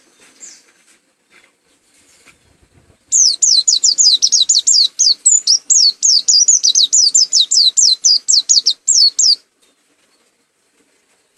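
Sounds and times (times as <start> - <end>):
white-eye singing: 3.1 - 9.4.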